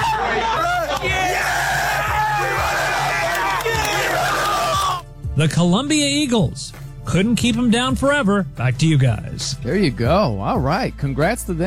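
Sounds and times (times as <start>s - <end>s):
crowd yelling and cheering at a school sports team's victory celebration: 0.0s - 5.0s
speech: 5.4s - 11.6s.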